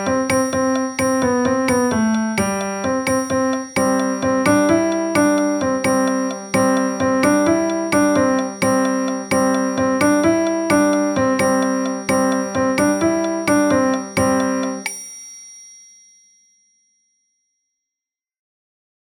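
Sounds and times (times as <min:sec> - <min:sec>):
piano music: 0:00.0 - 0:14.9.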